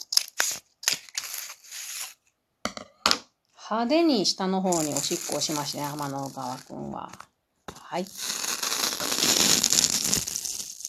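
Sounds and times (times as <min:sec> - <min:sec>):
scissors cutting open a silkworm cocoon: 0:00.0 - 0:02.1, 0:04.7 - 0:10.8
speech: 0:03.7 - 0:07.3, 0:07.9 - 0:08.3.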